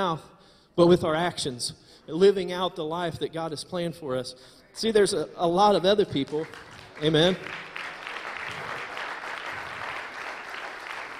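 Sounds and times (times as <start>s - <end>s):
speech: 0.0s - 7.7s
audience clapping: 6.2s - 11.1s.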